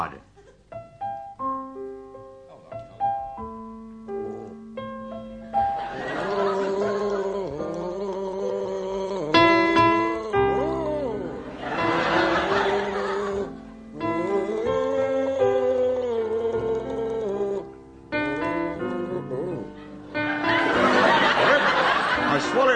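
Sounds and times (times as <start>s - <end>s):
laughter: 5.6s - 7.9s, 10.6s - 13.6s, 19.8s - 22.7s
man gargling the melody of a lullaby: 6.1s - 19.7s.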